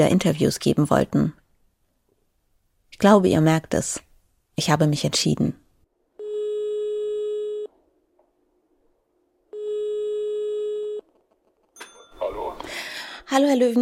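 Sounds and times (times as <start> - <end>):
speech: 0.0 - 1.4, 3.0 - 5.6, 13.3 - 13.8
telephone ringback tones over a phone line: 6.2 - 7.7, 9.5 - 11.0.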